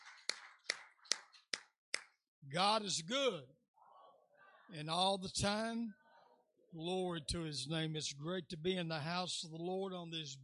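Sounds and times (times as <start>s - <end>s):
audience hand clapping: 0.0s - 2.2s
speech: 2.5s - 3.6s, 4.7s - 6.0s, 6.7s - 10.4s.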